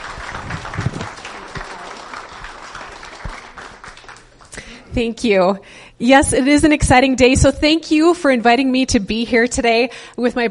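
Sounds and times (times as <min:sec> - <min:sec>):
church congregation clapping to welcome a guest pastor: 0:00.0 - 0:04.8
speech: 0:05.0 - 0:10.4.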